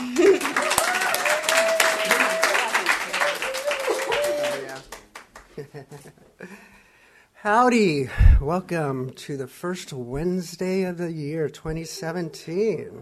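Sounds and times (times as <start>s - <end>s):
laughter: 0.0s - 1.0s, 5.5s - 6.3s
audience applause welcoming a speaker onstage: 0.0s - 5.4s
speech: 7.4s - 13.0s.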